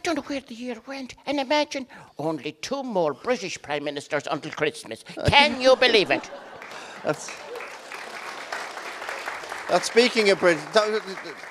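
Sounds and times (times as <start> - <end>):
speech: 0.1 - 7.4, 9.7 - 11.4
laughter: 5.1 - 11.4
studio audience applauding: 5.4 - 11.4.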